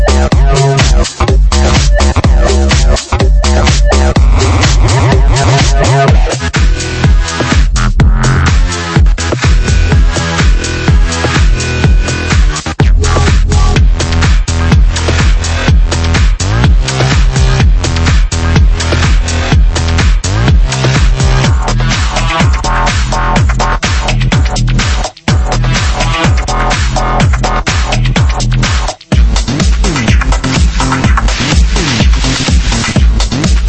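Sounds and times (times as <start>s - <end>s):
electro house bassline: 0.0s - 33.6s.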